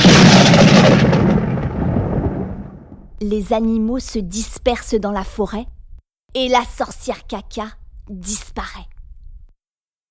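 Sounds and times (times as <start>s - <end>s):
loud thunder clap: 0.0s - 3.2s
speech: 3.2s - 8.9s.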